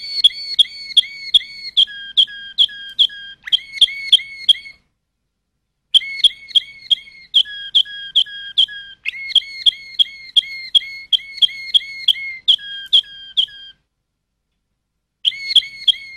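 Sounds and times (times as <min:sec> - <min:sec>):
Waterslager canary song: 0:00.0 - 0:04.9, 0:05.9 - 0:13.8, 0:15.2 - 0:16.1.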